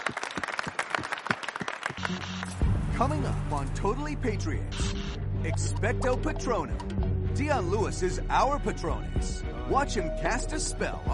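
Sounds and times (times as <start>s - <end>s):
round of applause from a group: 0.0s - 2.6s
speech: 3.0s - 11.1s.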